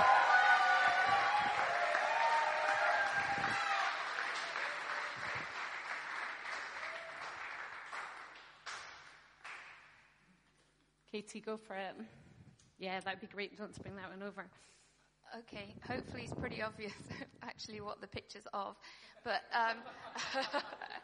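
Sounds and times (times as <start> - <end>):
audience applause: 0.0 - 9.7
speech: 11.2 - 12.2, 12.8 - 21.0
laughter: 19.8 - 21.0.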